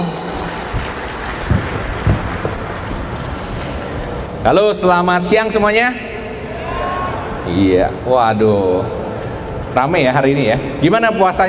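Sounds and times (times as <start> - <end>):
audience applause: 0.0 - 4.0
speech: 4.4 - 6.1, 7.5 - 9.0, 9.8 - 11.4.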